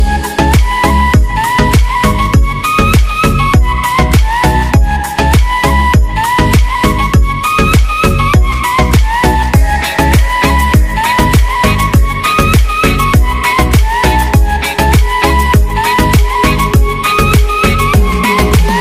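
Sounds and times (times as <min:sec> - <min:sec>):
flute: 0:00.0 - 0:18.7.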